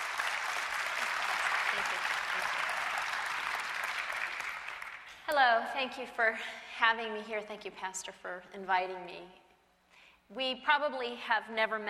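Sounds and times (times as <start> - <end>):
church congregation applauding a guest speaker: 0.0 - 5.2
speech: 5.3 - 9.4, 10.3 - 11.8.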